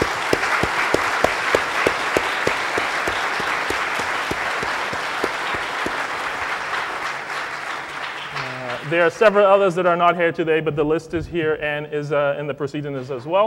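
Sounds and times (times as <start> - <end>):
audience clapping: 0.0 - 9.5
speech: 8.9 - 13.4.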